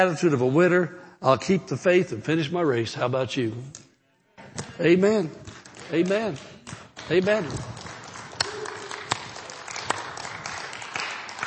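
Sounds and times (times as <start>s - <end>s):
speech: 0.0s - 3.9s, 4.6s - 7.8s
audience clapping: 4.6s - 11.4s.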